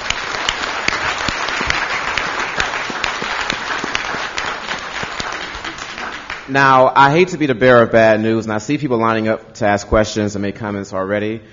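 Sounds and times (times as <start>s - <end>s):
audience applause: 0.0s - 6.5s
speech: 6.5s - 11.5s.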